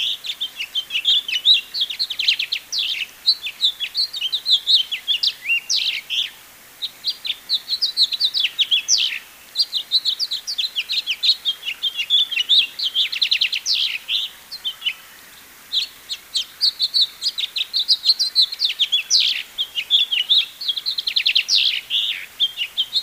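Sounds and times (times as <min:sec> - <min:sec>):
house finch Haemorhous mexicanus singing a fast jumbled warble: 0:00.0 - 0:15.1, 0:15.7 - 0:23.0.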